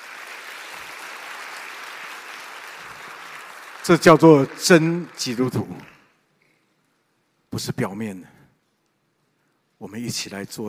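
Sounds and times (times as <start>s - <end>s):
audience applause: 0.0s - 6.0s
speech: 3.9s - 5.9s, 7.6s - 8.4s, 9.8s - 10.6s.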